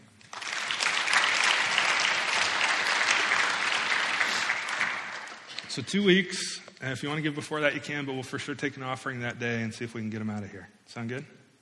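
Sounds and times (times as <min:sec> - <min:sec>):
room full of people clapping: 0:00.0 - 0:05.9
speech: 0:05.8 - 0:11.4.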